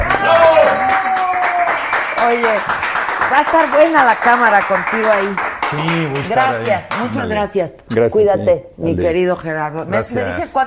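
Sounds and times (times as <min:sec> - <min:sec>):
audience applause: 0:00.0 - 0:07.1
speech: 0:02.3 - 0:10.6.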